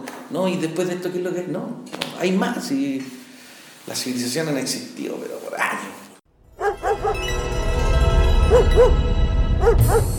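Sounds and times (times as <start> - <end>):
speech: 0.3 - 3.2, 3.9 - 6.1, 8.5 - 10.1
dog barking: 6.6 - 7.2, 8.5 - 9.0, 9.6 - 10.1.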